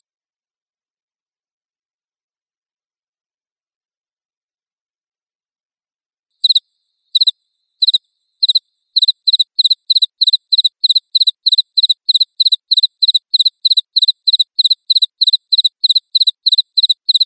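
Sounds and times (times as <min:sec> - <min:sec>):
crickets chirping: 0:06.4 - 0:17.2.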